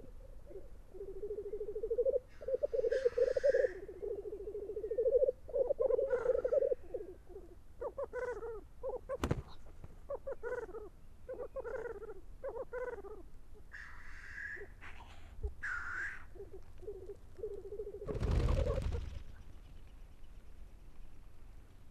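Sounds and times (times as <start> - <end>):
black grouse bubbling cooing: 0.0 - 9.2, 10.1 - 13.2, 16.2 - 19.2.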